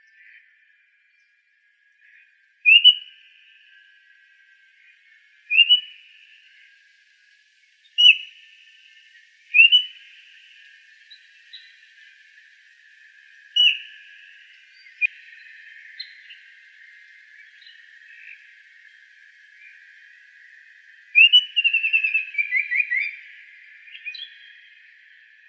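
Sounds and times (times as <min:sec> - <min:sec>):
icterid bird calls: 0:02.0 - 0:03.7, 0:04.8 - 0:06.6, 0:08.0 - 0:08.4, 0:09.5 - 0:12.1, 0:13.2 - 0:25.4.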